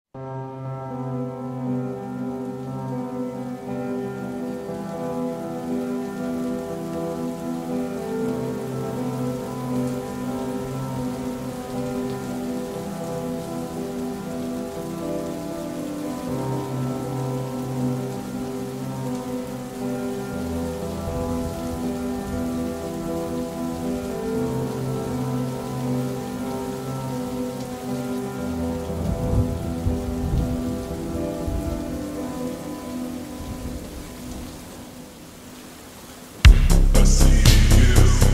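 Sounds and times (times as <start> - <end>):
slowed rain effect: 0.2 - 38.3.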